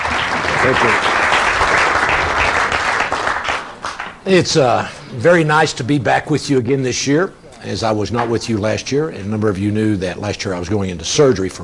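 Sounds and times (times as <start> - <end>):
audience at a men's retreat applauding a speaker: 0.0 - 4.2
speech: 0.7 - 1.2, 4.2 - 11.6.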